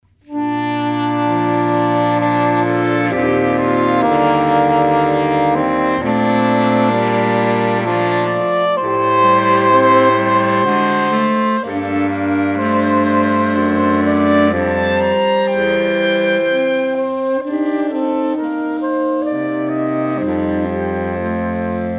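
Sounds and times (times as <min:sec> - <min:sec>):
saxophone: 0:00.1 - 0:21.9.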